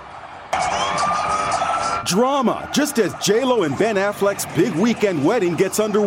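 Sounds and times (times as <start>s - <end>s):
ambulance siren wailing: 0.5s - 5.4s
speech: 2.1s - 6.0s.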